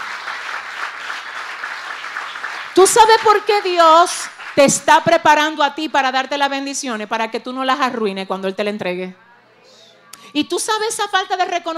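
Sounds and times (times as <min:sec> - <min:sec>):
crowd applause: 0:00.0 - 0:04.6
speech: 0:02.8 - 0:09.2, 0:10.3 - 0:11.7.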